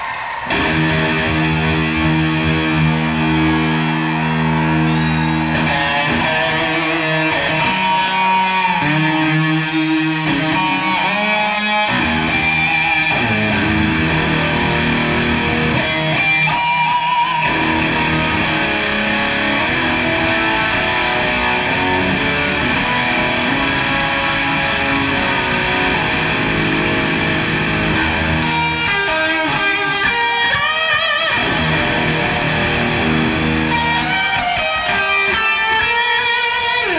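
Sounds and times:
guitar solo: 0.1 - 36.9.

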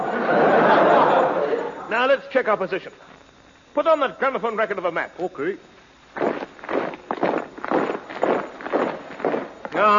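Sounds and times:
laughter: 0.0 - 1.9
speech: 2.0 - 6.3, 9.8 - 9.9
marching footsteps on a road as a comedy sound effect: 6.1 - 9.8.

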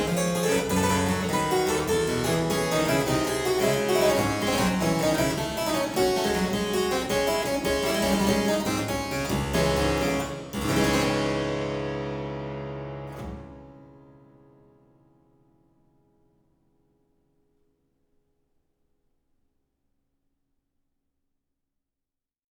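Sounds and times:
harpsichord gigue in D minor: 0.0 - 14.1.

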